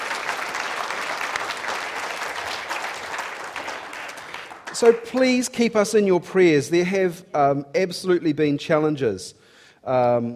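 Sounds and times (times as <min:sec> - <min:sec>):
audience applause: 0:00.0 - 0:05.4
speech: 0:04.8 - 0:10.3.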